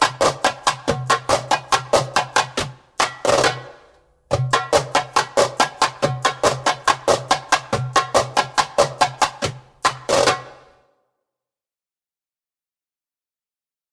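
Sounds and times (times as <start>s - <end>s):
slow djembe rhythm: 0.0s - 10.8s.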